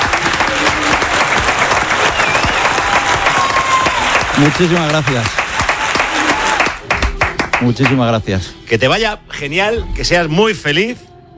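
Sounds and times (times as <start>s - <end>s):
applause from a group of people: 0.0s - 8.2s
speech: 4.4s - 5.4s, 7.6s - 11.1s.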